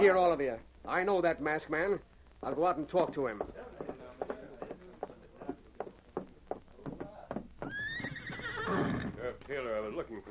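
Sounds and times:
speech: 0.0 - 4.0, 8.7 - 10.3
horse hooves clopping: 2.5 - 9.6
horse whinnying: 7.6 - 9.2.

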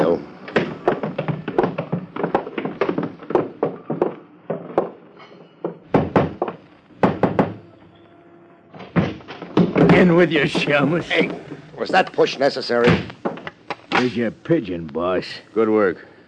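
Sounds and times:
footsteps going down cellar steps: 0.0 - 7.5, 8.9 - 13.9
speech: 10.1 - 13.1, 14.0 - 16.1.

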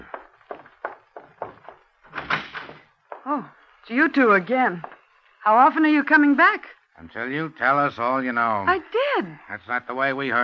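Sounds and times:
door being opened: 1.2 - 3.3
speech: 3.3 - 10.4.

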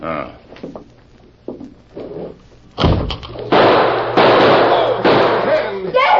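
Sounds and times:
gunshots in a radio drama shootout: 2.8 - 5.8.

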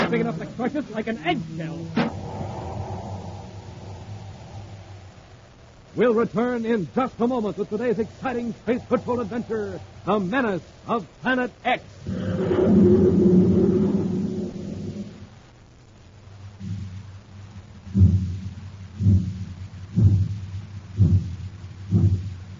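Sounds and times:
train chugging: 0.0 - 2.2, 6.0 - 11.8, 16.6 - 22.5
heavy low rumble of a train: 0.0 - 11.2, 11.9 - 22.5
speech: 0.1 - 2.2, 6.0 - 13.3.

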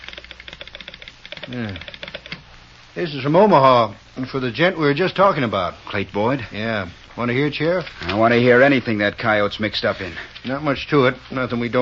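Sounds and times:
telegraph sounder clicking a message over the line: 0.0 - 2.5
low voice murmuring: 1.5 - 1.9
speech: 1.5 - 2.0, 3.0 - 11.8.

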